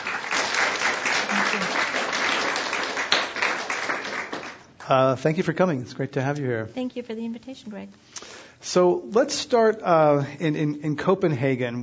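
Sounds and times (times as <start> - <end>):
live audience applause at the Commonwealth Club in San Francisco: 0.0 - 5.0
speech: 4.9 - 11.8.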